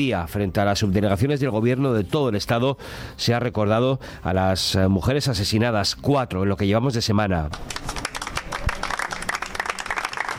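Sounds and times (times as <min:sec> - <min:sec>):
speech: 0:00.0 - 0:07.9
applause in Bilbao: 0:07.5 - 0:10.3.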